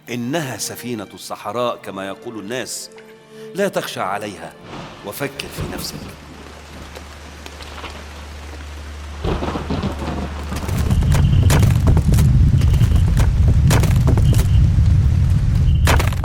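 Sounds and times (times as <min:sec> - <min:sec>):
speech: 0:00.1 - 0:06.3
boulder crashing down: 0:09.2 - 0:16.2
lightning strike: 0:09.2 - 0:16.2.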